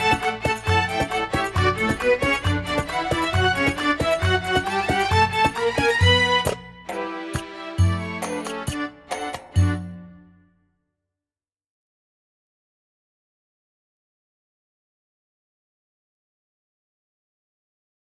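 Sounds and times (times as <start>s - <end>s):
Istanbul string sound on KORG PA3X keyboard: 0.0s - 10.5s.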